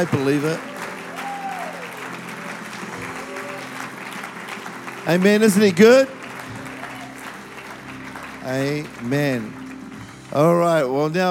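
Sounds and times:
speech: 0.0 - 0.7, 5.1 - 6.2, 8.4 - 9.6, 10.3 - 11.2
audience shouting and clapping: 0.0 - 8.3.

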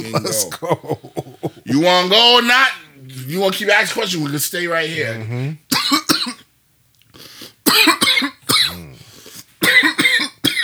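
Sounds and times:
person coughing after a drink went down the wrong pipe: 0.0 - 1.8, 5.7 - 6.4, 7.7 - 10.6
raspy throat-clearing: 0.0 - 1.8, 7.7 - 10.6
laughter: 0.0 - 3.1
speech: 0.0 - 6.1.

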